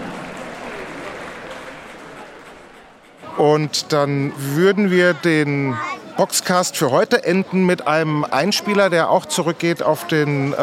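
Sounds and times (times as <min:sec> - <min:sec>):
applause: 0:00.0 - 0:03.2
speech: 0:03.4 - 0:10.6.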